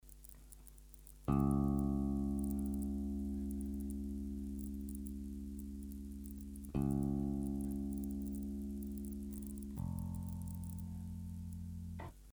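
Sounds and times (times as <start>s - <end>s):
electric bass crackling: 0.0s - 12.3s.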